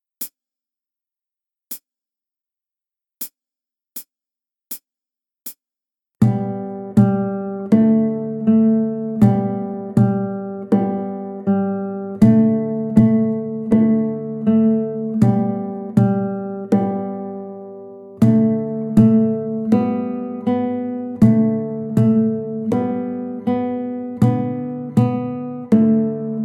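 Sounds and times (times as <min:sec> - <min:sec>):
guitar: 0:06.2 - 0:26.4.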